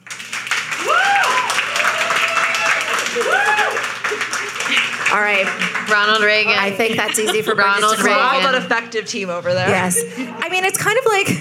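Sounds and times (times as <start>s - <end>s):
audience clapping: 0.0s - 7.4s
laughter: 3.2s - 10.5s
speech: 5.1s - 11.3s.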